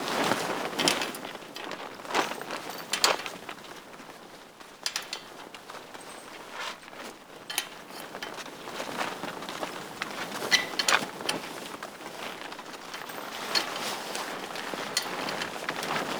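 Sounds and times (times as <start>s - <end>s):
tarp rustling: 0.0s - 16.1s.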